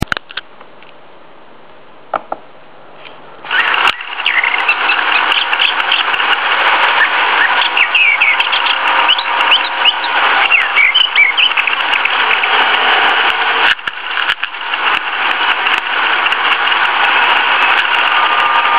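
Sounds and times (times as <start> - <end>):
Western Orphean warbler singing a scratchy chattering warble: 3.5 - 18.7.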